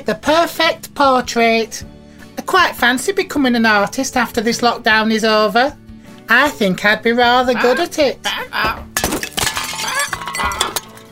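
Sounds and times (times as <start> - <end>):
speech: 0.0 - 8.9
paint pot knocked over and spilling: 9.0 - 11.1.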